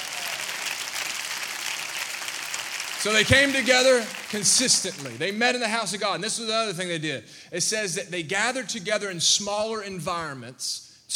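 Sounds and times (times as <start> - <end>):
audience clapping hands: 0.0 - 5.4
speech: 3.0 - 11.1.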